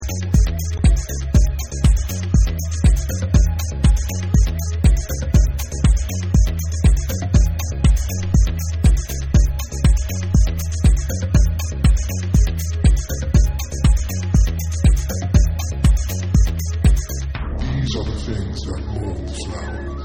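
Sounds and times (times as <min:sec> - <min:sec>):
dub percussion: 0:00.0 - 0:20.0.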